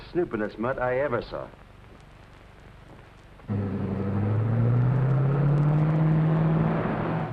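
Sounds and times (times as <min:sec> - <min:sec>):
speech: 0:00.1 - 0:01.6
roadster car driving off: 0:03.5 - 0:07.3.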